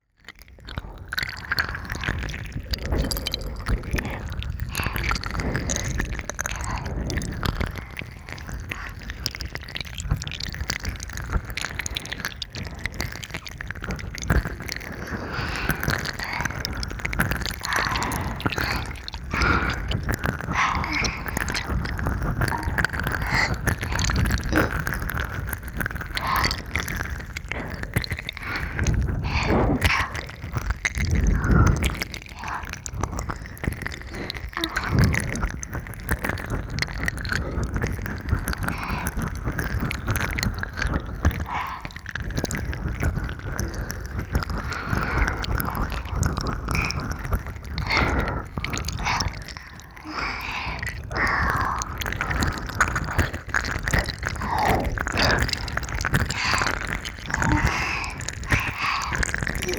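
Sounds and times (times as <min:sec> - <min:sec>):
ASMR ear licking sounds: 0:00.0 - 0:59.7.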